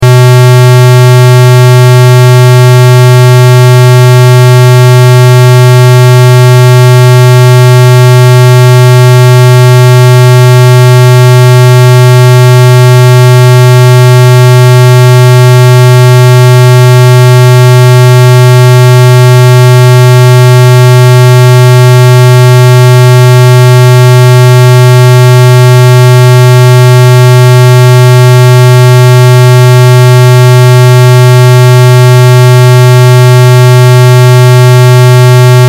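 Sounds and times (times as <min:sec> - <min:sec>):
square wave test tone: 0:00.0 - 0:35.6.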